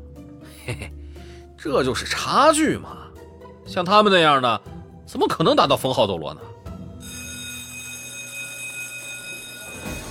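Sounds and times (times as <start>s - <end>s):
speech: 0.7s - 1.0s, 1.6s - 3.0s, 3.7s - 6.5s
school bell ringing for class: 7.0s - 10.1s.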